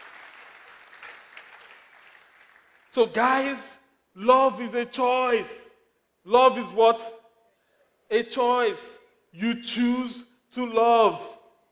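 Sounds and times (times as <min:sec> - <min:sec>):
audience clapping: 0:00.0 - 0:03.6
speech: 0:02.9 - 0:07.2, 0:08.1 - 0:11.4.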